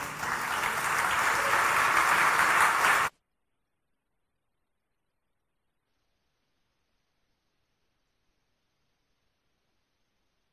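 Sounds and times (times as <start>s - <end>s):
audience applause: 0.0s - 3.1s.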